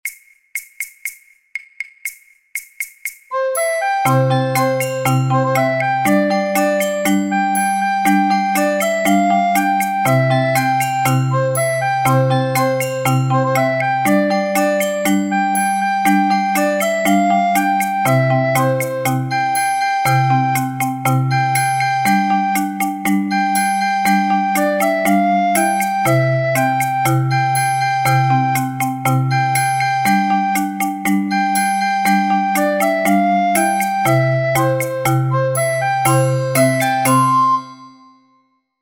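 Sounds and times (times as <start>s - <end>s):
instrumental ensemble: 2.8s - 37.8s.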